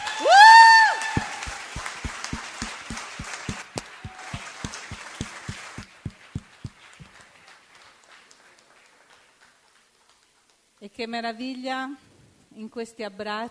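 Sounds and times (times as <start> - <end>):
audience applause: 0.0 - 9.6
speech: 11.0 - 13.4.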